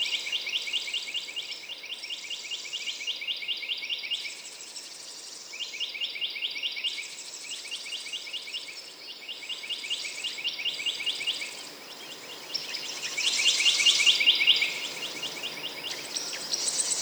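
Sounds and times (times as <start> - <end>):
birds: 0.0 - 17.0.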